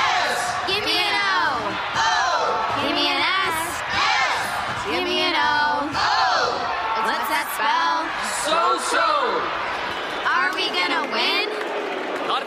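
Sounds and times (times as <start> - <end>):
cheerleaders chanting and cheering: 0.0 - 12.0.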